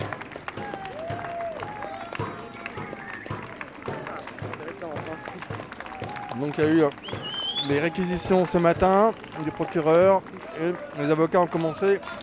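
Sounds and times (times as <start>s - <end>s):
scattered clapping: 0.0s - 12.2s
crowd cheering and shouting: 0.5s - 4.2s, 4.9s - 12.2s
speech: 6.4s - 12.2s.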